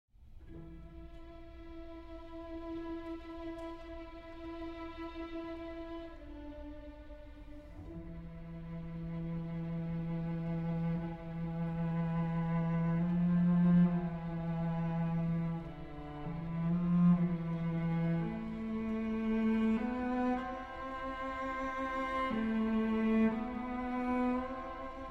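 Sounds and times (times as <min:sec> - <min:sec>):
cello concerto andante: 0:00.2 - 0:25.1.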